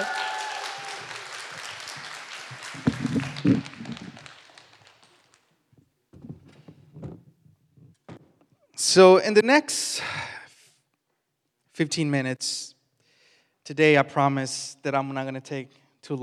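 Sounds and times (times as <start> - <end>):
audience hand clapping: 0.0 - 5.6
speech: 9.0 - 10.2, 11.8 - 12.8, 13.7 - 16.2.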